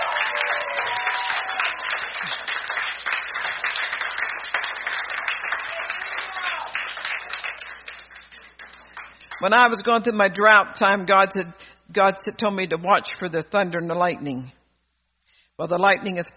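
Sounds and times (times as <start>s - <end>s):
audience clapping hands: 0.0s - 9.8s
speech: 9.4s - 14.6s, 15.6s - 16.3s.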